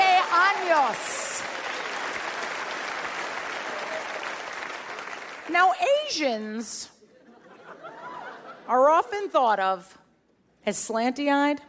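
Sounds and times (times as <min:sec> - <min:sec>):
crowd applauding: 0:00.0 - 0:05.5
speech: 0:05.5 - 0:07.0, 0:08.7 - 0:10.0, 0:10.6 - 0:11.6
laughter: 0:07.1 - 0:08.8.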